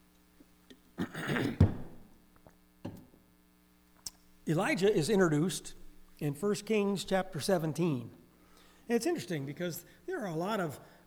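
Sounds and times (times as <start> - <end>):
throat clearing: 1.0 - 2.0
speech: 4.5 - 8.2, 8.9 - 11.0.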